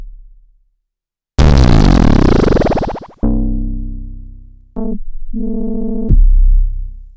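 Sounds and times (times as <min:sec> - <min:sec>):
bass note C: 0:01.4 - 0:07.0.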